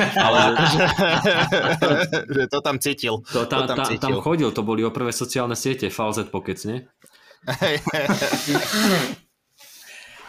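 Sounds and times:
laughter: 0.0 - 2.7, 7.4 - 9.2
speech: 0.0 - 9.2
person blowing nose: 8.1 - 9.8.

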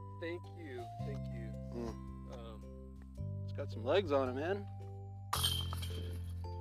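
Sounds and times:
speech: 0.2 - 2.4, 3.6 - 4.8
disc slamming into disc golf basket: 5.3 - 6.2
disc golf basket chains rattling: 5.3 - 6.6.

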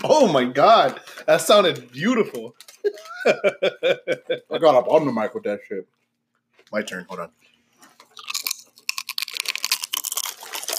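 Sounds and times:
speech: 0.0 - 6.0, 6.7 - 7.5
laughter: 2.8 - 4.6
person crunching on sour chips: 8.0 - 10.7.

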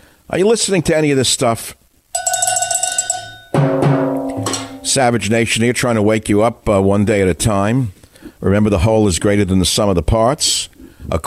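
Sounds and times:
speech: 0.3 - 1.8, 4.9 - 11.2
cowbell being struck: 2.2 - 5.0.

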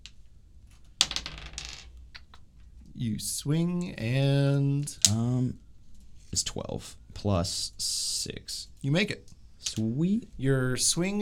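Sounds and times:
dice rolling on a table: 0.0 - 2.5
speech: 3.0 - 5.6, 6.3 - 11.2.

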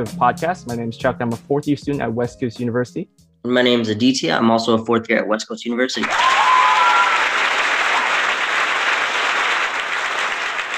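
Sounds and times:
speech: 0.0 - 6.4
live studio audience applause: 6.0 - 10.7.

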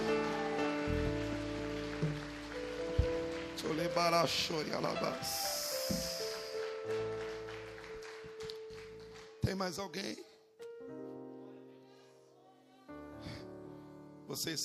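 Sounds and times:
audience applauding: 0.0 - 9.8
speech: 3.7 - 5.5, 9.5 - 10.2, 14.4 - 14.6.

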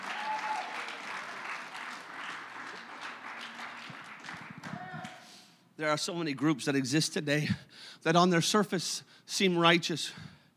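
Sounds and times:
audience clapping hands: 0.0 - 5.3
speech: 5.8 - 10.3.

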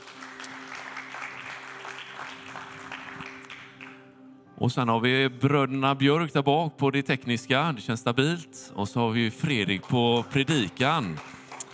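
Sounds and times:
crowd applause: 0.0 - 4.0, 9.5 - 11.7
speech: 4.6 - 11.3.

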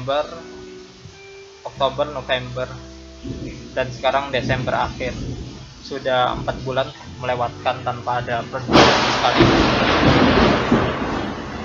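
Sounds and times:
speech: 0.0 - 0.6, 1.7 - 10.4
thunder rumbling outside: 3.2 - 7.6, 8.4 - 11.6.

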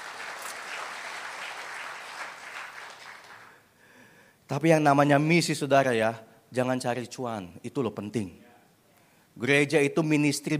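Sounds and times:
audience applause: 0.0 - 3.6
speech: 4.5 - 8.4, 9.4 - 10.5.

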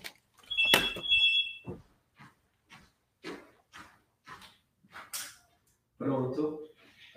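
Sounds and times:
mobile phone ringing: 0.5 - 1.8
speech: 6.0 - 6.5.

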